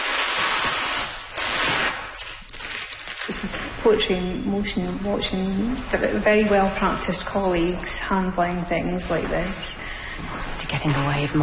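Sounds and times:
paper tape peeled while unwrapping a painting: 0:00.0 - 0:04.2
speech: 0:03.8 - 0:09.7, 0:10.8 - 0:11.4.

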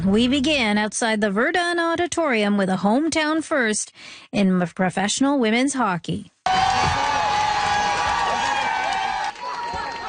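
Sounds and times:
speech: 0:00.0 - 0:06.9
fans cheering Montreal Victoire hockey team outside the Verdun Auditorium: 0:06.5 - 0:10.0.

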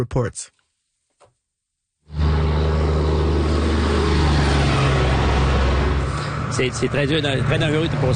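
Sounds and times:
highway traffic roar: 0:02.1 - 0:08.1.

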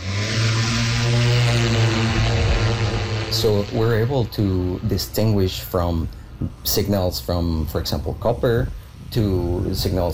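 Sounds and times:
aircraft engine at takeoff carrying magnetic survey equipment: 0:00.0 - 0:06.2
speech: 0:03.3 - 0:10.1.

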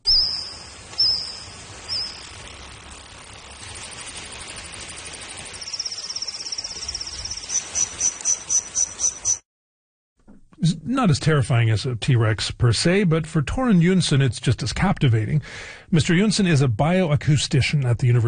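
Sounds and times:
recreated Jurassic-era insect chirps and buzzing trill: 0:00.0 - 0:09.4
speech: 0:11.0 - 0:18.2.

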